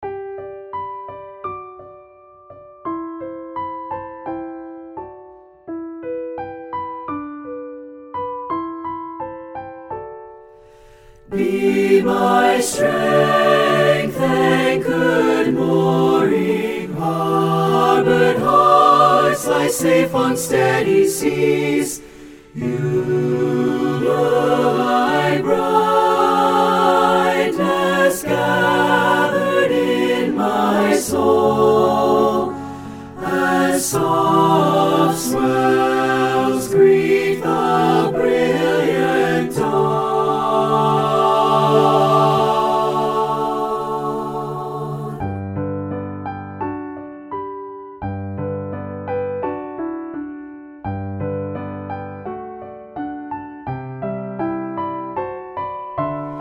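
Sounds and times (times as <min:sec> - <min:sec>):
piano: 0:00.0 - 0:56.3.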